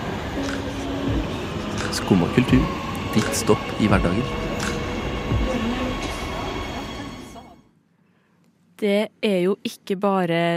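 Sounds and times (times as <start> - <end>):
train arriving at a station: 0.0 - 7.7
speech: 2.0 - 4.4, 8.8 - 10.5.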